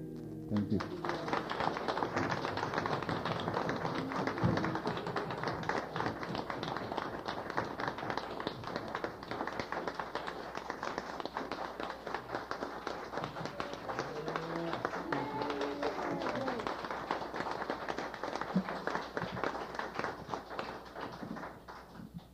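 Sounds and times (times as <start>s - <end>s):
audience applause: 0.5s - 22.0s.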